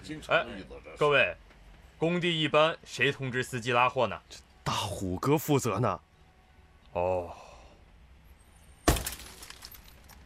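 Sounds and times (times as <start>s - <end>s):
speech: 0.1s - 6.1s, 6.9s - 7.4s
police car window glass being smashed: 8.8s - 10.0s.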